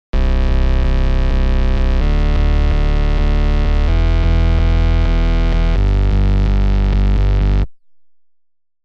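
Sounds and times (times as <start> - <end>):
bass: 0.0 - 8.3.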